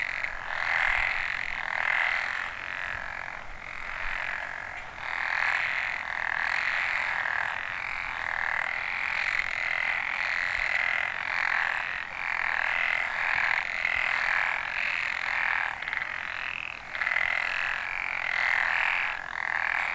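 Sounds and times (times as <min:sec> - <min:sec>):
frogs calling in a continuous chorus in Ehime, Japan: 0:00.0 - 0:19.9.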